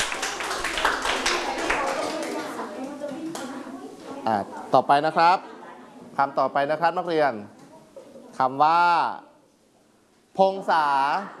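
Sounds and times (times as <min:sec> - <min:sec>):
classroom students clapping: 0:00.0 - 0:03.5
speech: 0:04.2 - 0:05.5, 0:06.2 - 0:07.6, 0:08.4 - 0:09.3, 0:10.4 - 0:11.3.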